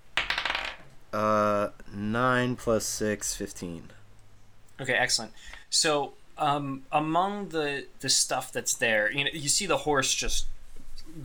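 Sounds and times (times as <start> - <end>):
twenty-sided die rolling on table: 0.2 - 0.9
speech: 1.1 - 1.5, 2.2 - 4.0, 4.8 - 10.5, 11.1 - 11.2.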